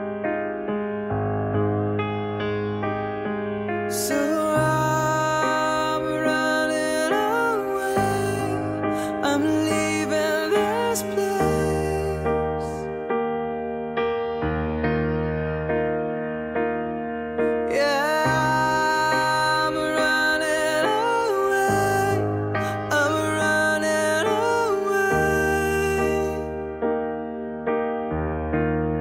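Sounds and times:
running instrumental music: 0.0s - 29.0s.

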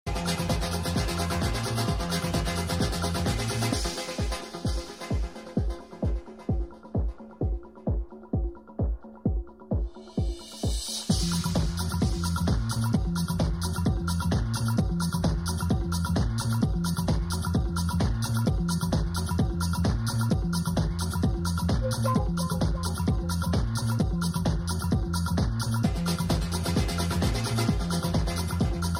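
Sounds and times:
dance music: 0.1s - 28.9s.

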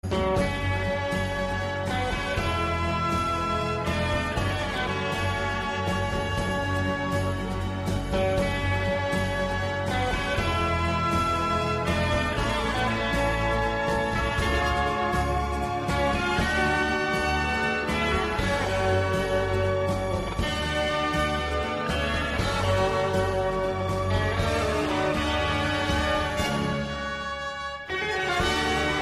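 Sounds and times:
Mexican tune ringtone: 0.0s - 29.0s.

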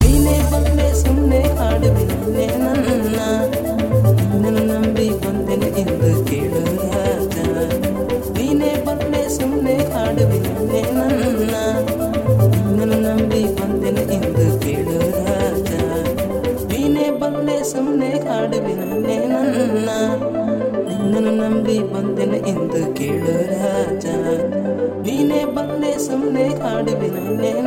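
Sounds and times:
asian style music mix: 0.0s - 27.6s.

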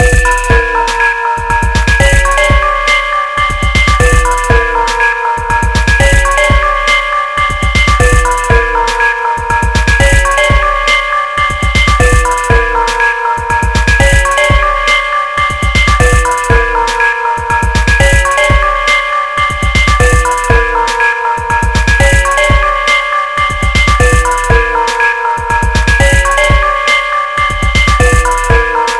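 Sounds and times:
music beat: 0.0s - 28.9s.

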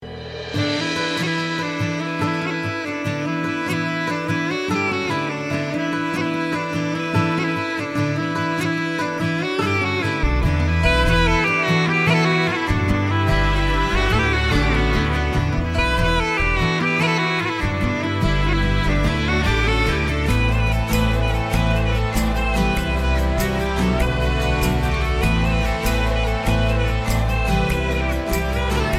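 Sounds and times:
instrumental music: 0.0s - 28.9s.

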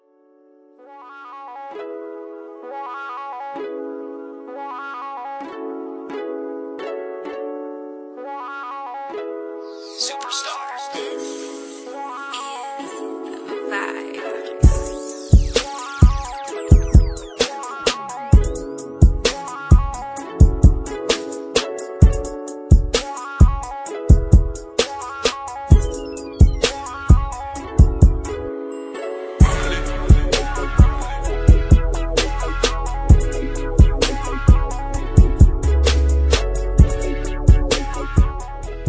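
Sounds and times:
smooth slow rap hip hop instrumental beat: 0.8s - 7.1s, 8.2s - 38.8s.

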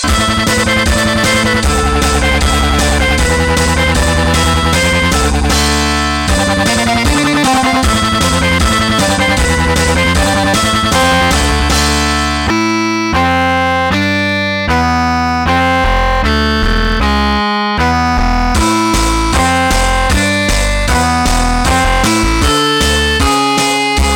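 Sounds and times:
death metal music: 0.0s - 24.1s.

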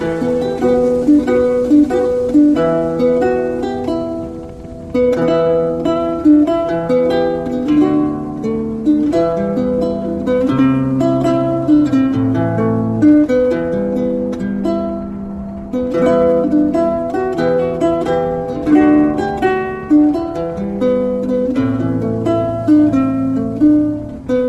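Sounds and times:
lute playing: 0.0s - 24.4s.

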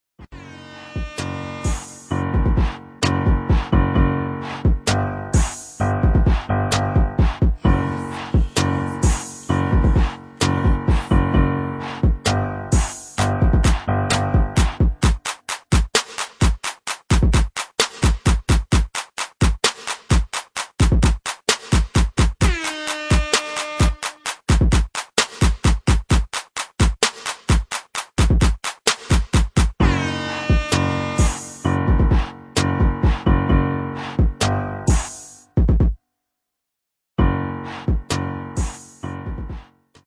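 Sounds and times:
instrumental music: 0.3s - 35.7s, 37.2s - 40.0s.

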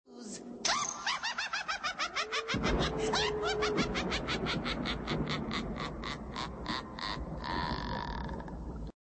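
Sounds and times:
person laughing: 0.7s - 8.4s.

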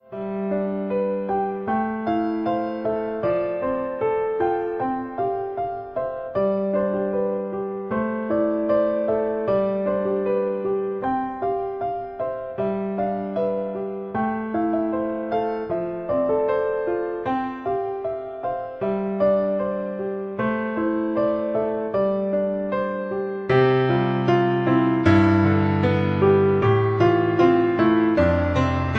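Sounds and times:
piano: 0.0s - 28.9s.

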